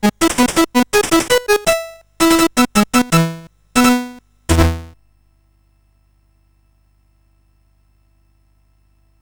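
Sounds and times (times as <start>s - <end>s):
fireworks celebration chiptune music on CSG8580R5 chip: 0.0s - 4.9s.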